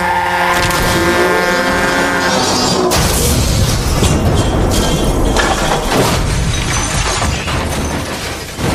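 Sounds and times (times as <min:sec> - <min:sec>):
engine or horn drone: 0:00.0 - 0:04.1
crunching metal: 0:00.5 - 0:08.7
car and truck collision crash: 0:02.1 - 0:08.7
glass shattering: 0:02.5 - 0:08.7.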